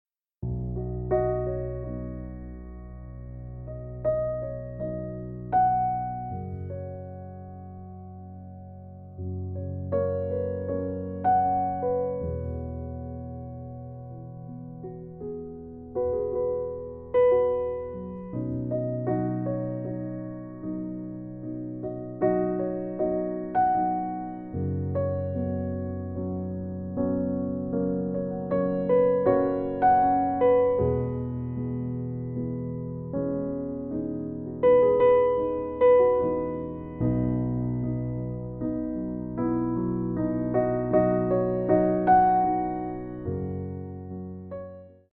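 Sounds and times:
piano music: 0.4 - 45.1.

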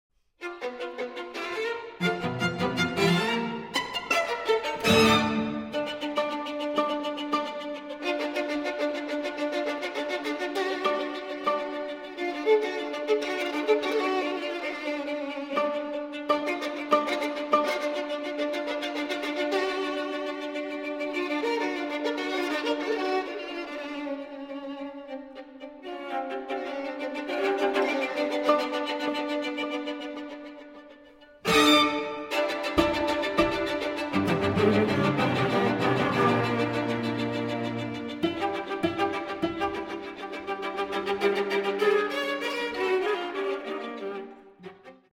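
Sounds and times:
string quartet in A minor allegro molto capriccioso: 0.4 - 45.1.

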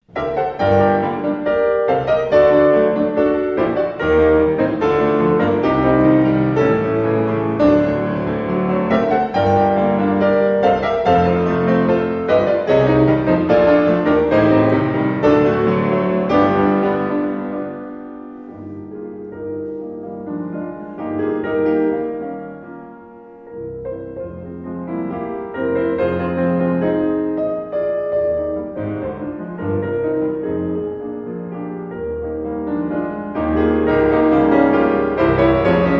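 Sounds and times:
piano ballade played allegro energico: 0.0 - 35.9.

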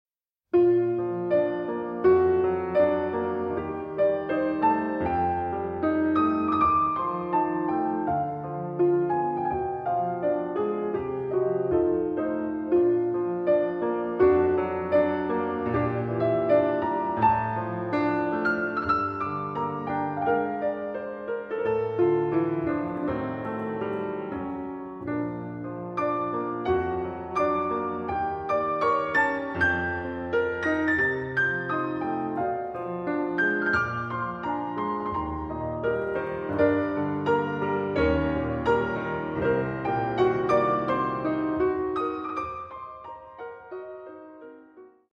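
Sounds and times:
piano piece: 0.5 - 45.1.

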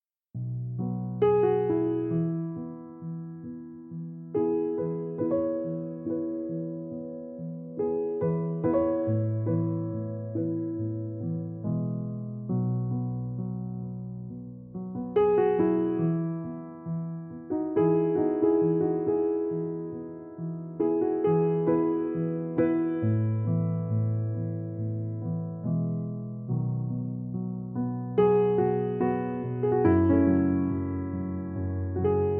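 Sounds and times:
piano music: 0.5 - 32.3.

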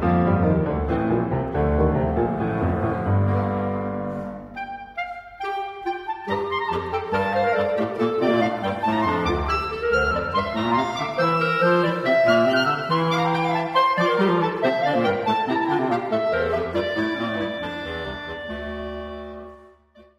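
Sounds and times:
clarinet quartet: 0.0 - 20.1
piano: 0.0 - 20.1.

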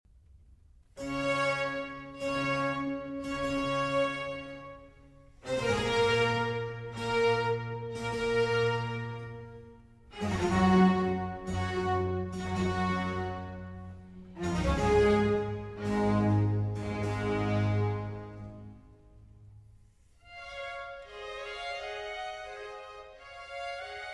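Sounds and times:
slow cello concerto in G: 1.0 - 24.1.

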